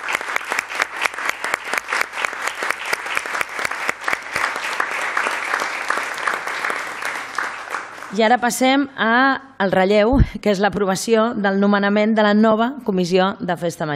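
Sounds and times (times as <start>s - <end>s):
applause: 0.0s - 8.6s
speech: 8.1s - 13.9s.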